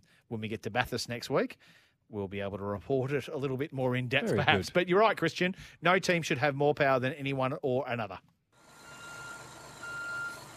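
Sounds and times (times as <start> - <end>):
speech: 0.3 - 8.3
truck reversing beeper: 8.7 - 10.5.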